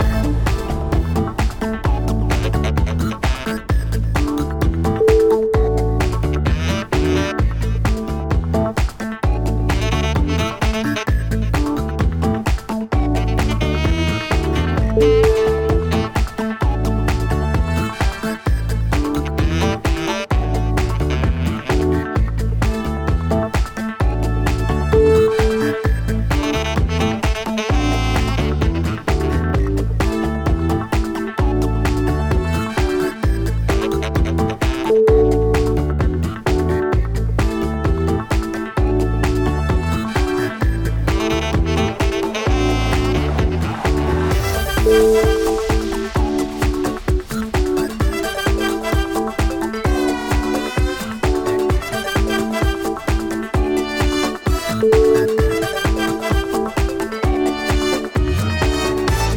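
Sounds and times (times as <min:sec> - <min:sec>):
retro funky groove: 0:00.0 - 0:59.3.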